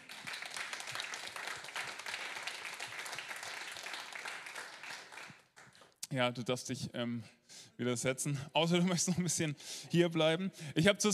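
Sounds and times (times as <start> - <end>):
audience applause: 0.0 - 5.7
speech: 6.1 - 11.1.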